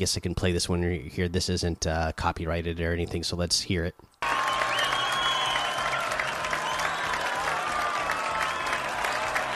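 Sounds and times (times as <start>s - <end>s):
speech: 0.0s - 4.1s
crowd cheering: 4.2s - 9.5s.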